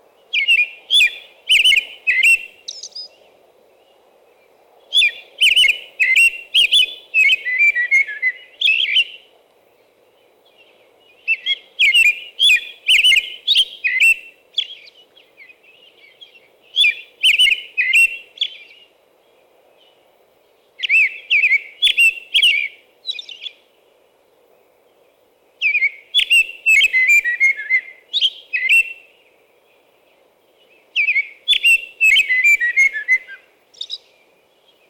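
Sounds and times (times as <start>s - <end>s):
American robin song: 0.3s - 3.2s, 4.9s - 9.3s, 10.5s - 18.9s, 20.8s - 23.6s, 25.6s - 29.2s, 30.7s - 34.8s.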